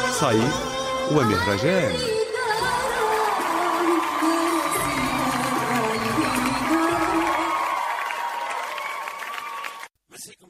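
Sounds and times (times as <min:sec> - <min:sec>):
speech: 0:00.2 - 0:02.3
festival crowd applause: 0:02.5 - 0:09.9.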